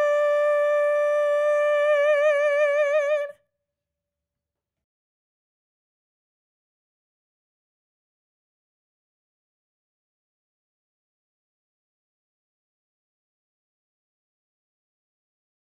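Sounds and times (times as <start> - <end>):
soprano singing a folk song: 0.0 - 3.4.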